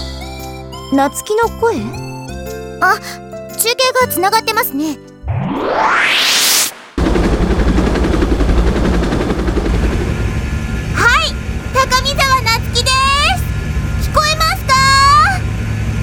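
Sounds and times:
speech: 0.9 - 2.0, 2.8 - 6.2
helicopter in flight: 7.0 - 16.0.

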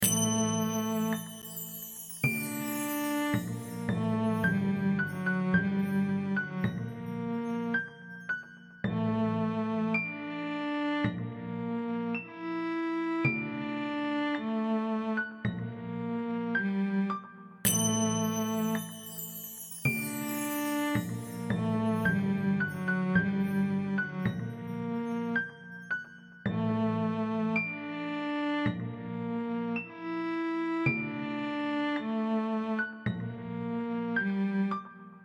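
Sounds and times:
orchestra: 0.0 - 34.8.

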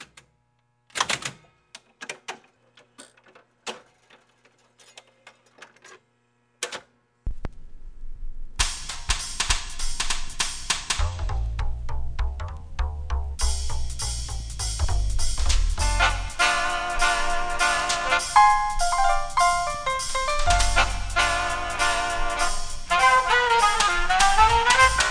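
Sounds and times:
jukebox song: 8.6 - 25.0.

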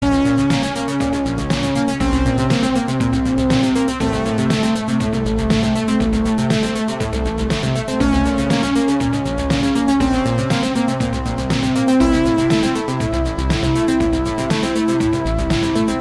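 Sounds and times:
game boss music: 0.0 - 15.9.

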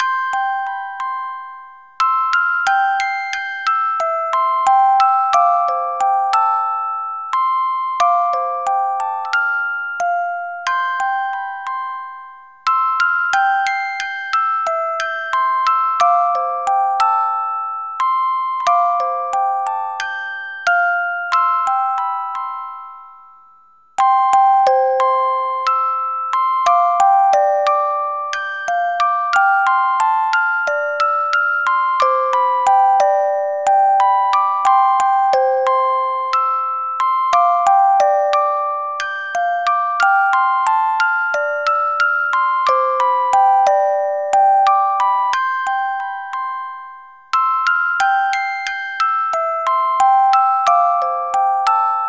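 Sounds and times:
music box: 0.0 - 52.0.

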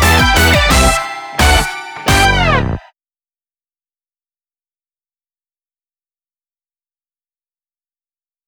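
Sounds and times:
instrumental music: 0.0 - 2.9.

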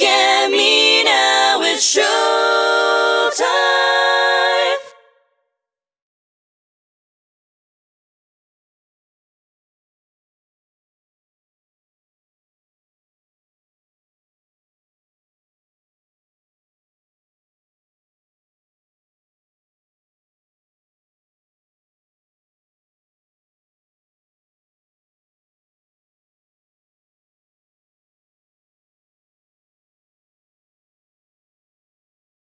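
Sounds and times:
layered vocals: 0.0 - 5.1.

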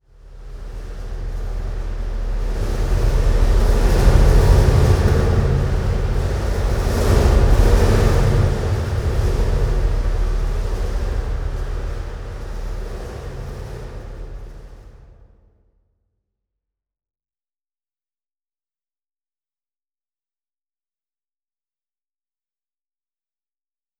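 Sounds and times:
stinger indoors: 0.3 - 14.9.

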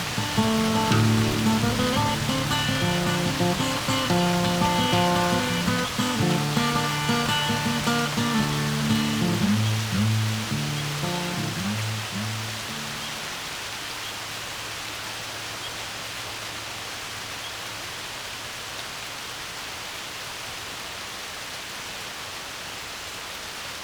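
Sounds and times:
music: 0.0 - 13.2
light rain: 0.0 - 23.8.

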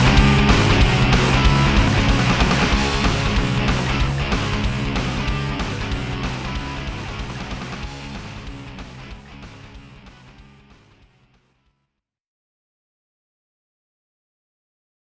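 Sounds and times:
battle music beat: 0.0 - 10.6.

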